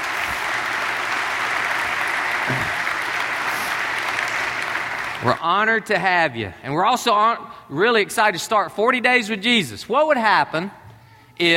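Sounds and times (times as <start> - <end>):
audience applause welcoming special guests at a gathering: 0.0 - 5.4
speech: 5.2 - 10.8, 11.4 - 11.5.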